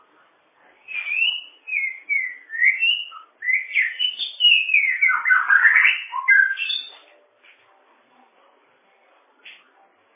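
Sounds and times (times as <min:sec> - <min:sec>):
bird whistling song: 0:00.9 - 0:07.0.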